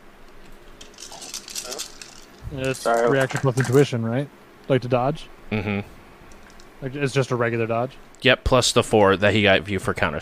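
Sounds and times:
dice rattling and clattering across a table in a tabletop role-playing game: 0.8s - 3.8s
speech: 2.5s - 6.0s, 6.8s - 10.2s.

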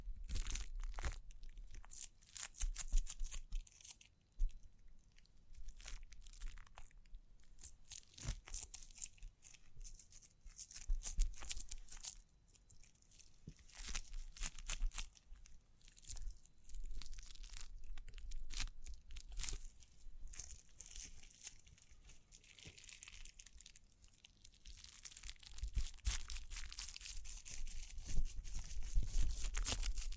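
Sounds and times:
crinkling and scratching: 0.0s - 30.1s.

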